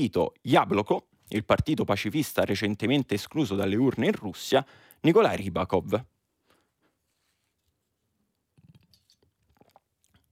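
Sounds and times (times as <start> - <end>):
speech: 0.0 - 6.1
sipping water: 8.6 - 10.2.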